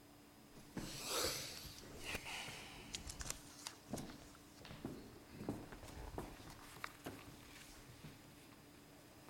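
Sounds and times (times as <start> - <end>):
two men's footsteps trudging down the steps of a house: 0.6 - 1.0, 1.6 - 8.2.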